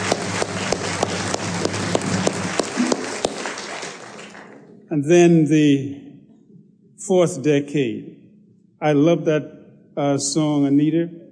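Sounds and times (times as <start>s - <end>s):
audience applause: 0.0s - 4.7s
speech: 4.9s - 6.0s, 7.0s - 8.2s, 8.8s - 11.2s.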